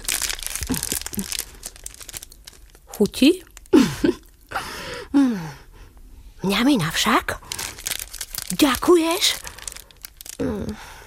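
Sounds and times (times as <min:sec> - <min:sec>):
chocolate wrapper crinkling: 0:00.0 - 0:04.4, 0:07.3 - 0:10.4
speech: 0:01.2 - 0:01.4, 0:03.0 - 0:04.2, 0:06.5 - 0:07.5, 0:08.5 - 0:09.5.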